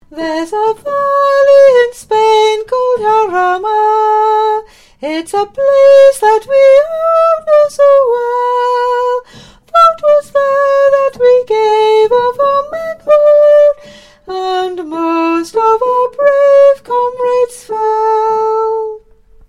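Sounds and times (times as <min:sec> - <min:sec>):
soprano singing: 0:00.0 - 0:19.2.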